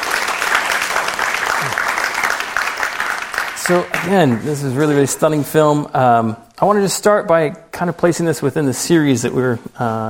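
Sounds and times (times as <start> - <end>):
audience applause: 0.0 - 4.6
speech: 3.7 - 10.0.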